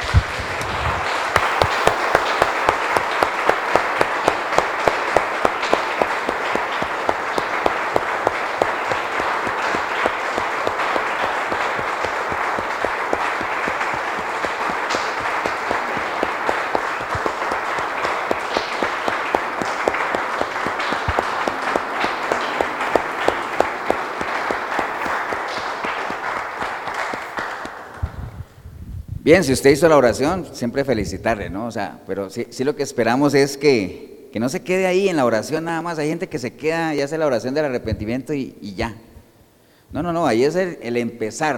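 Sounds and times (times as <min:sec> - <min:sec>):
audience applause: 0:00.0 - 0:28.2
speech: 0:29.3 - 0:39.1, 0:39.9 - 0:41.5.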